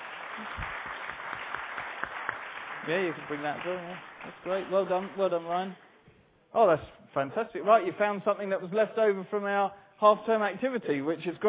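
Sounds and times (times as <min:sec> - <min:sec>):
round of applause for a group of children: 0:00.0 - 0:05.9
speech: 0:02.8 - 0:05.9, 0:06.5 - 0:11.4.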